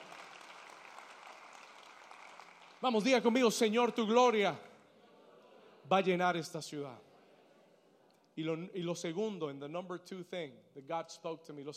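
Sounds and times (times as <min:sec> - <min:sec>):
audience applause: 0:00.0 - 0:03.3
speech: 0:02.8 - 0:04.7, 0:05.9 - 0:07.1, 0:08.4 - 0:11.7.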